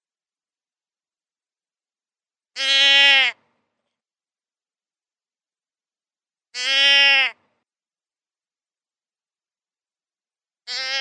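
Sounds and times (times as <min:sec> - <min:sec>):
deer bleating: 0:02.6 - 0:03.4, 0:06.5 - 0:07.4, 0:10.7 - 0:11.0.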